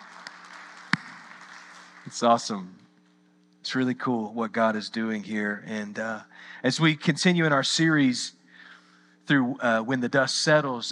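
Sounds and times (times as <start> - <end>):
audience applause: 0.0 - 2.5
speech: 2.0 - 2.8, 3.7 - 8.4, 9.3 - 10.9.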